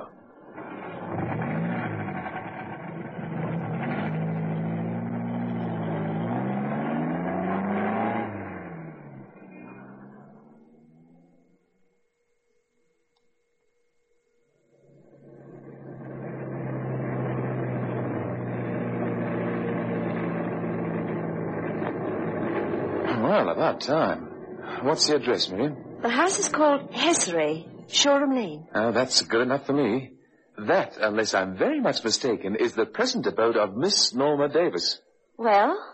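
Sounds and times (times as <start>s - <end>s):
car engine starting and running: 0.0s - 12.2s, 14.7s - 30.0s, 30.6s - 35.0s
speech: 23.4s - 35.9s.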